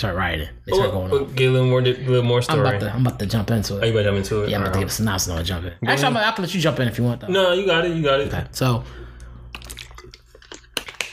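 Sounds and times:
speech: 0.0s - 9.0s
low steady hum: 0.0s - 11.0s
person drinking water: 9.0s - 11.1s.

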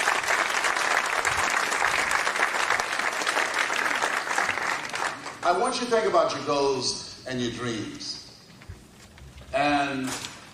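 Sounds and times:
audience applause: 0.0s - 5.4s
speech: 5.5s - 8.2s, 9.6s - 10.3s.

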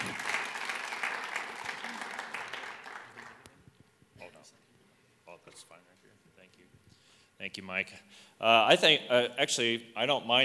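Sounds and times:
audience applause welcoming a speaker: 0.0s - 3.5s
speech: 7.4s - 10.4s.

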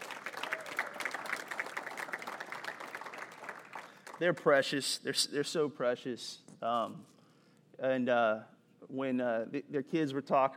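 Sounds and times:
crowd clapping: 0.0s - 4.6s
speech: 4.2s - 7.2s, 7.8s - 10.5s.

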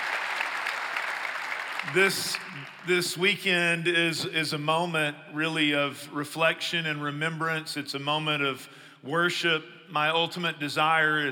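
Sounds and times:
church congregation clapping in welcome: 0.0s - 3.1s
speech: 1.8s - 11.3s.

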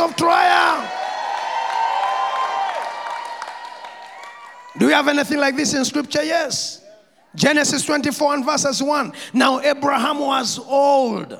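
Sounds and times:
audience clapping hands: 0.0s - 5.2s
speech: 4.8s - 11.3s.

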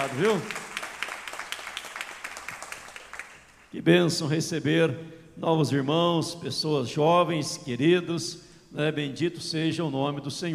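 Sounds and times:
speech: 0.0s - 0.6s, 3.7s - 10.5s
applause: 0.0s - 3.7s.

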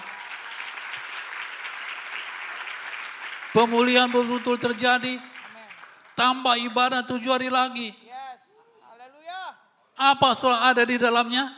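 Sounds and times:
audience applause: 0.0s - 6.4s
speech: 3.6s - 5.3s, 6.2s - 8.0s, 10.0s - 11.5s.

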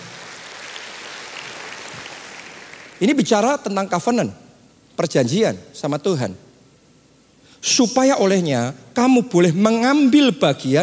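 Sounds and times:
large crowd clapping: 0.0s - 3.2s
speech: 3.0s - 4.4s, 5.0s - 6.5s, 7.6s - 10.8s.

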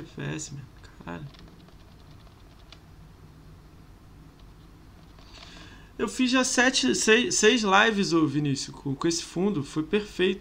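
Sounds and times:
speech: 0.0s - 1.6s, 6.0s - 10.4s
computer keyboard keys clicking: 1.2s - 2.8s.

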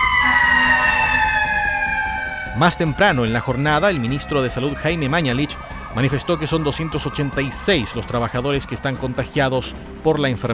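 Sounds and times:
fire truck horns sounding: 0.2s - 1.6s
speech: 2.6s - 10.5s.

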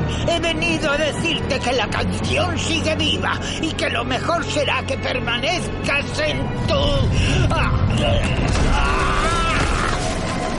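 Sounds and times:
speech: 0.3s - 9.3s
ice explosion: 8.2s - 10.5s.

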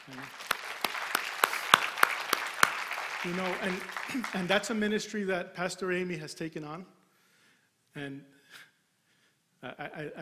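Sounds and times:
applause: 0.0s - 5.0s
speech: 0.1s - 0.4s, 3.2s - 7.0s, 8.0s - 8.7s, 9.6s - 10.2s.

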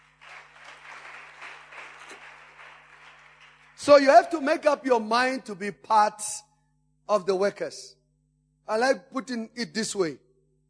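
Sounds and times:
crowd clapping: 0.0s - 4.4s
speech: 3.9s - 6.5s, 7.1s - 8.0s, 8.7s - 10.2s.

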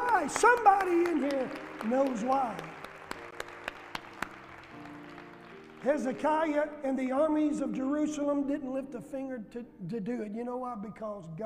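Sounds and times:
audience hand clap applause: 0.0s - 6.7s
speech: 0.3s - 2.8s, 5.8s - 11.4s.

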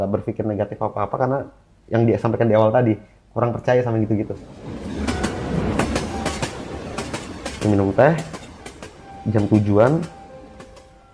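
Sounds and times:
speech: 0.0s - 4.9s, 7.6s - 8.4s, 9.2s - 10.2s
train rumbling on rails: 4.3s - 11.1s
train wheels clickety-clack crossing rail joints: 4.6s - 11.1s.

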